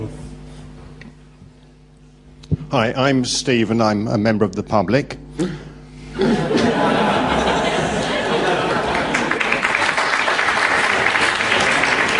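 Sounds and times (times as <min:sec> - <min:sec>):
speech: 0:02.7 - 0:06.4
crowd chuckling and murmuring: 0:06.1 - 0:12.1
audience applause: 0:07.0 - 0:12.1.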